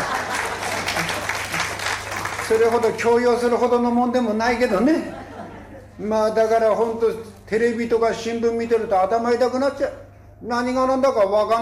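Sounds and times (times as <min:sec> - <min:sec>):
laughter: 0:00.0 - 0:02.4, 0:04.6 - 0:06.0
audience applause: 0:00.0 - 0:03.1
speech: 0:02.5 - 0:05.2, 0:06.0 - 0:11.6.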